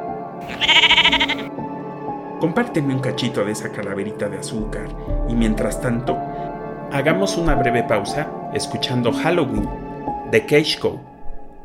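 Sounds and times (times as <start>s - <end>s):
sheep bleating: 0.4s - 1.5s
speech: 0.4s - 1.7s, 2.4s - 11.1s.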